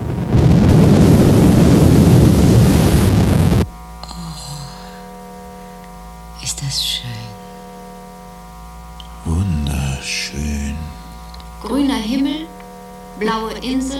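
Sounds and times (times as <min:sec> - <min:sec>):
spacecraft braking thrusters firing: 0:00.0 - 0:03.6
steady low hum: 0:00.0 - 0:13.9
people talking: 0:04.0 - 0:04.8, 0:06.4 - 0:07.4, 0:09.1 - 0:12.5, 0:13.2 - 0:13.9.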